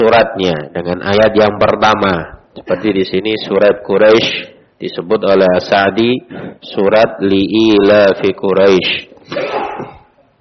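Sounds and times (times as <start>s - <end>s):
speech: 0.0s - 9.9s
sneeze: 9.2s - 10.2s.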